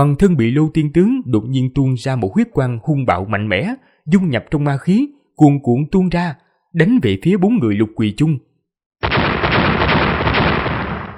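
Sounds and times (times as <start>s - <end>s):
speech: 0.0s - 9.2s
loud explosion blasts: 9.0s - 11.1s.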